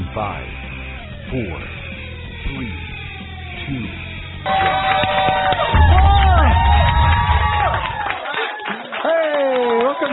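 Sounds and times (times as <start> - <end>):
speech: 0.2 - 0.6, 1.3 - 1.8, 2.5 - 2.9, 3.7 - 5.6
live studio audience clapping and cheering: 4.4 - 10.1.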